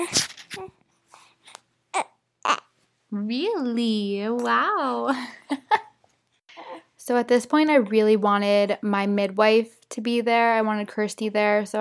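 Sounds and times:
speech: 0.0 - 0.3, 3.1 - 5.8, 7.1 - 11.7
hungry newborn baby fussing and crying: 0.0 - 2.8.

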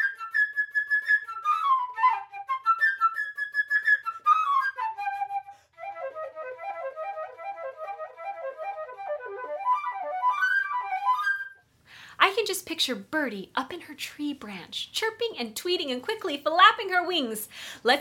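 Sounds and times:
high-pitched flute melody: 0.0 - 11.7
speech: 12.2 - 18.0.

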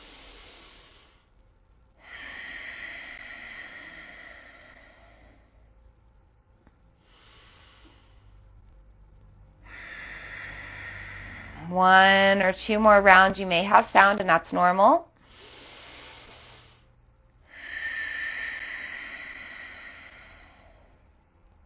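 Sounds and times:
forceful breathing out through the nose: 0.0 - 1.3, 2.0 - 5.6, 9.6 - 11.6, 15.2 - 16.9, 17.5 - 21.1
speech: 11.7 - 15.1.

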